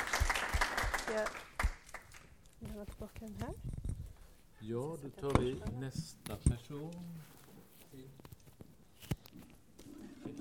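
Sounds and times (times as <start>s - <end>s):
audience applause: 0.0s - 2.2s
speech: 1.1s - 1.4s, 2.6s - 3.8s, 4.6s - 8.2s.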